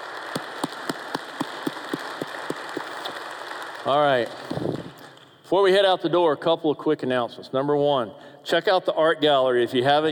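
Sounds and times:
audience applauding: 0.0s - 5.0s
sharp evenly spaced claps in a steady rhythm: 0.0s - 5.3s
speech: 3.9s - 4.7s, 5.5s - 10.0s.

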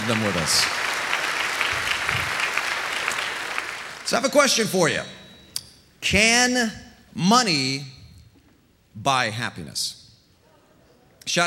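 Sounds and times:
audience applause welcoming online viewers: 0.0s - 4.2s
speech: 0.1s - 0.8s, 4.1s - 5.2s, 6.0s - 8.0s, 9.0s - 10.0s, 11.2s - 11.4s.

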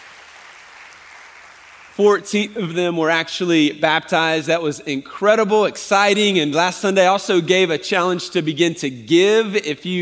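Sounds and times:
audience applause: 0.0s - 2.0s
speech: 2.0s - 10.0s.

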